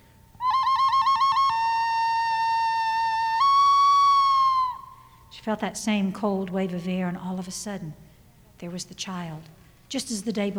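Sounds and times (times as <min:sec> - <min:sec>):
bird call: 0:00.0 - 0:05.3
speech: 0:05.4 - 0:08.0, 0:08.6 - 0:10.5.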